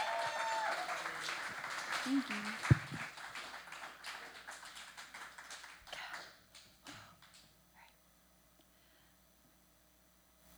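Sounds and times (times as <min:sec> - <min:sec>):
person whooping: 0:00.0 - 0:01.4, 0:02.0 - 0:03.0
crowd applauding: 0:00.0 - 0:07.4
faint voices: 0:01.1 - 0:03.0.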